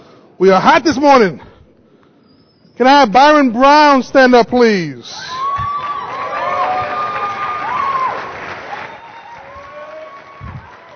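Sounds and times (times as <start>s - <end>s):
speech: 0.4s - 1.5s, 2.8s - 5.4s
high sustained whoops of cheering: 5.2s - 10.9s
audience clapping: 5.4s - 10.9s.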